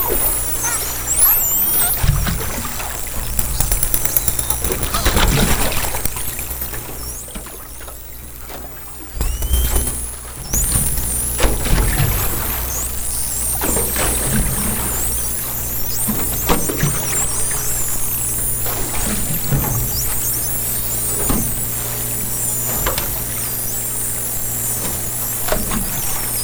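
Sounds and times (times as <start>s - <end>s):
dolphins whistling underwater: 0.0s - 26.4s.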